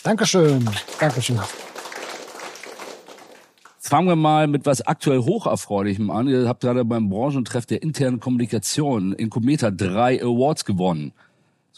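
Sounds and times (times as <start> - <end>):
speech: 0.0 - 1.7, 3.9 - 11.7
audience applause: 0.0 - 3.8.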